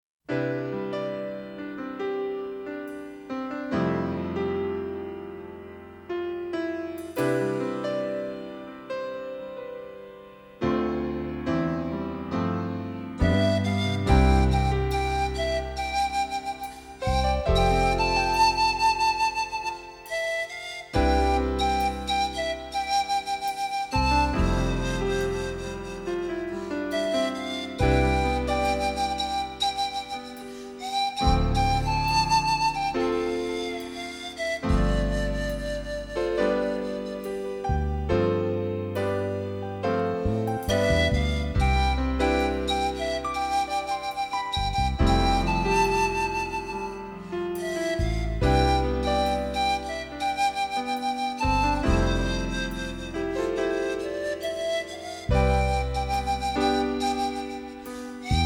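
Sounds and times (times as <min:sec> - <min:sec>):
flute: 0:00.3 - 0:58.4.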